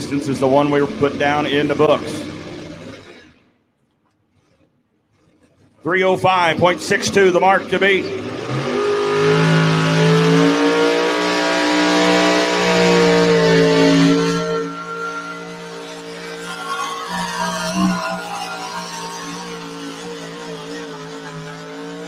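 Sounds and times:
pulling vehicle engine roaring down a pulling track: 0.0 - 3.4, 5.8 - 22.0
speech: 0.1 - 2.4, 5.8 - 8.4.

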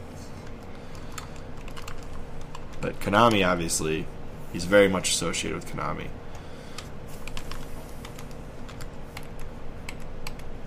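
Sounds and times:
low hum: 0.0 - 10.6
typing on a computer keyboard: 0.9 - 2.8, 7.2 - 10.5
speech: 2.8 - 6.2.

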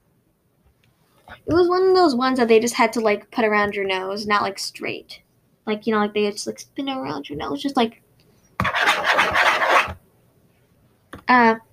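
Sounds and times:
speech: 1.3 - 8.0, 11.3 - 11.7
scratching a laptop: 8.6 - 10.0.

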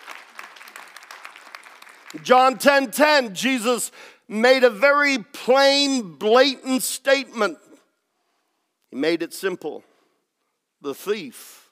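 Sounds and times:
audience clapping: 0.0 - 2.9
speech: 2.1 - 7.7, 8.9 - 9.9, 10.8 - 11.6.

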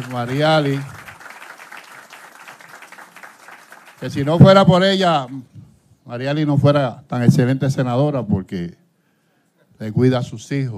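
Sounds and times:
speech: 0.0 - 1.0, 4.0 - 8.8, 9.8 - 10.7
audience applause: 0.0 - 4.6.

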